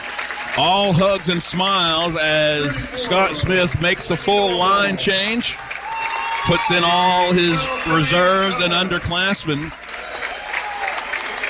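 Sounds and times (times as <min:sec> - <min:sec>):
large crowd applauding: 0:00.0 - 0:11.4
speech: 0:00.6 - 0:05.7, 0:06.4 - 0:09.8
faint cheer or whistle: 0:05.7 - 0:09.1, 0:09.9 - 0:11.4.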